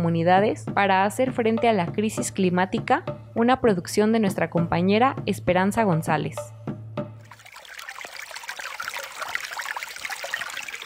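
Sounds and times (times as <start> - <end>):
speech: 0.0 - 6.6
water trickling: 7.2 - 10.8.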